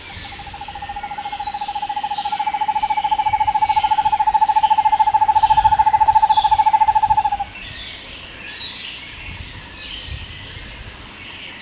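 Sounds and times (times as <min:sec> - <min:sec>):
bird giving a low pulsed trill: 0:00.0 - 0:07.5
constant high insect chorus: 0:00.0 - 0:11.6.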